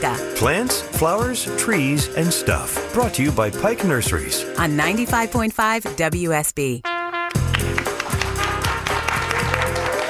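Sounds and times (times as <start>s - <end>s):
speech: 0.0s - 6.9s
live audience clapping: 7.3s - 10.0s.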